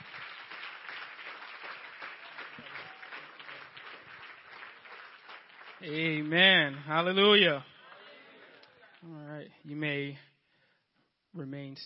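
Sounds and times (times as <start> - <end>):
audience applause: 0.0 - 9.0
speech: 5.8 - 7.7, 9.5 - 10.3, 11.4 - 11.8.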